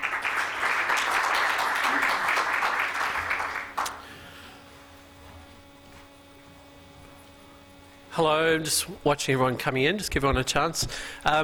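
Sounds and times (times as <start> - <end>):
audience applause welcoming a speaker at a workshop: 0.0 - 4.0
speech: 8.2 - 11.4.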